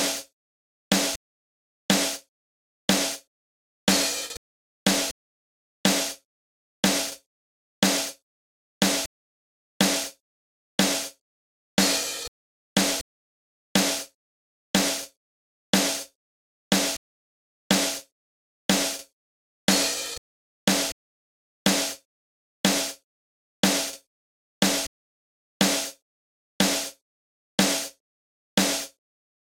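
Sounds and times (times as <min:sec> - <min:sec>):
drums: 0:00.0 - 0:01.2, 0:01.9 - 0:02.3, 0:02.9 - 0:03.3, 0:03.9 - 0:05.2, 0:05.8 - 0:08.2, 0:08.8 - 0:09.1, 0:09.8 - 0:10.2, 0:10.8 - 0:11.2, 0:11.8 - 0:13.1, 0:13.8 - 0:14.2, 0:14.8 - 0:17.0, 0:17.7 - 0:18.1, 0:18.7 - 0:19.1, 0:19.7 - 0:21.0, 0:21.7 - 0:23.0, 0:23.6 - 0:24.9, 0:25.6 - 0:26.0, 0:26.6 - 0:27.0, 0:27.6 - 0:28.0, 0:28.6 - 0:29.0.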